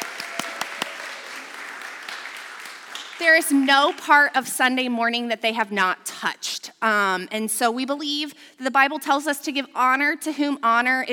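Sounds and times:
crowd applauding: 0:00.0 - 0:04.2
speech: 0:03.2 - 0:11.1.

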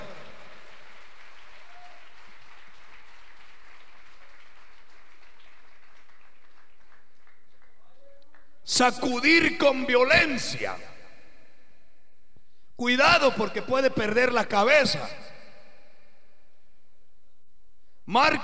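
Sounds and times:
audience applauding: 0:00.0 - 0:08.6
speech: 0:08.7 - 0:10.9, 0:12.8 - 0:15.2, 0:18.1 - 0:18.4.

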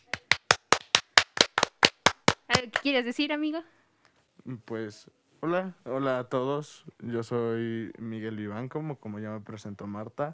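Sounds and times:
applause: 0:00.0 - 0:02.9
speech: 0:02.6 - 0:03.8, 0:04.4 - 0:10.3.

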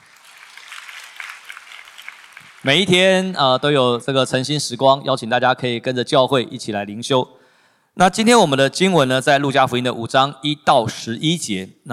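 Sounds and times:
audience clapping hands: 0:00.0 - 0:03.1
speech: 0:02.6 - 0:07.4, 0:08.0 - 0:11.9.

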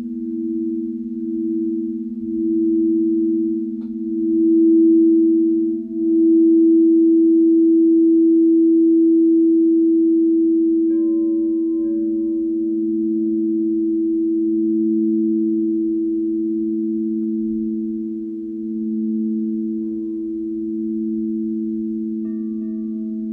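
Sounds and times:
singing bowl humming: 0:00.0 - 0:23.3.

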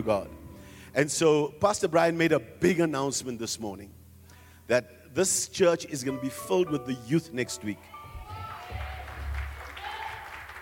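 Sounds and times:
speech: 0:00.0 - 0:00.4, 0:01.0 - 0:04.0, 0:04.7 - 0:08.0
weak audience clapping: 0:08.4 - 0:10.6.

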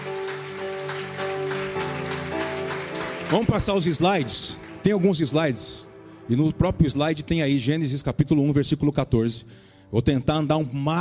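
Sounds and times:
audience applause: 0:00.0 - 0:05.6
speech: 0:03.3 - 0:10.9.

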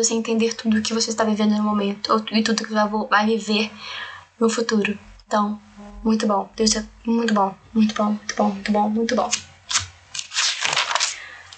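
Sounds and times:
speech: 0:00.0 - 0:09.5
paper sheets being turned and handled: 0:09.7 - 0:11.5.

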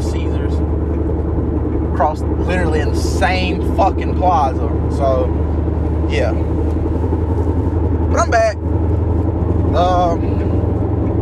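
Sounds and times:
car engine drone while driving: 0:00.0 - 0:11.1
road rumble while driving: 0:00.0 - 0:11.1
speech: 0:02.0 - 0:07.2, 0:08.1 - 0:08.7, 0:09.8 - 0:10.6.

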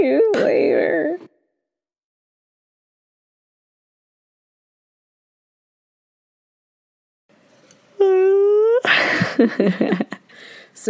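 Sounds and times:
speech: 0:00.0 - 0:01.3, 0:09.4 - 0:10.2
person yawning: 0:08.0 - 0:08.9
laughter: 0:08.9 - 0:10.3.

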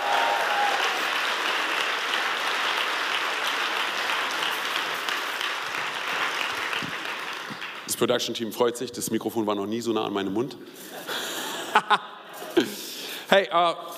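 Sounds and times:
audience applause: 0:00.0 - 0:08.0
speech: 0:08.0 - 0:11.2, 0:13.3 - 0:13.9
laughter: 0:10.8 - 0:13.0.

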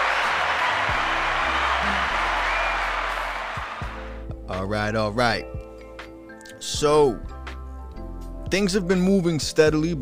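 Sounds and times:
round of applause: 0:00.0 - 0:04.2
speech: 0:04.7 - 0:05.6, 0:06.6 - 0:07.3, 0:08.5 - 0:09.9.

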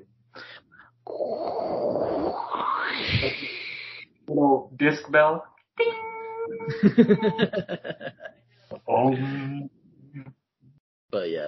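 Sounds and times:
voice imitating ocean waves: 0:01.3 - 0:04.0, 0:08.9 - 0:10.3
speech: 0:04.8 - 0:05.5, 0:06.7 - 0:08.2, 0:09.0 - 0:09.7, 0:11.1 - 0:11.4
laughter: 0:06.6 - 0:08.3.

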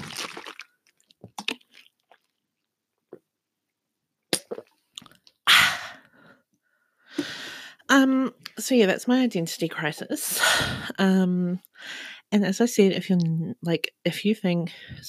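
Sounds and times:
close-miked drinking sips gulps and swallows: 0:00.0 - 0:02.4, 0:04.4 - 0:05.3
breathy exhale after drinking: 0:07.1 - 0:07.8
speech: 0:07.9 - 0:15.0.

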